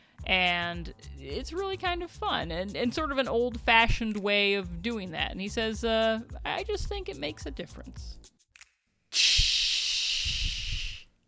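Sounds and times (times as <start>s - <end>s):
speech: 0.3s - 8.3s
person imitating garbage truck air brake hiss: 9.1s - 11.1s.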